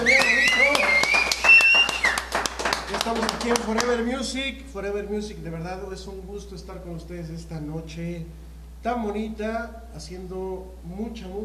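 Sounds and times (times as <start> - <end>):
loud applause: 0.0 - 4.0
speech: 3.1 - 11.4.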